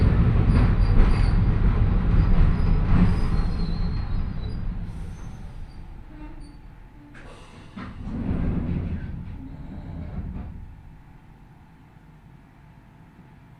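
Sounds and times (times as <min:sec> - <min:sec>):
train with old nose-suspended traction motors growling: 0:00.0 - 0:12.0.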